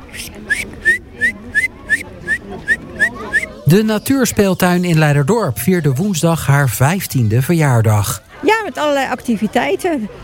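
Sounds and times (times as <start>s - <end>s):
faint murmur: 0.0s - 10.2s
person whistling an imitation of a great tit call: 0.1s - 3.5s
speech: 0.2s - 0.8s, 3.7s - 10.2s.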